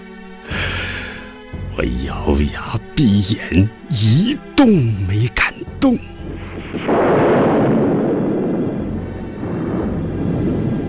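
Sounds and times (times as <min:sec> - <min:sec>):
speech: 0:01.8 - 0:06.1
thunderclap: 0:06.4 - 0:10.8.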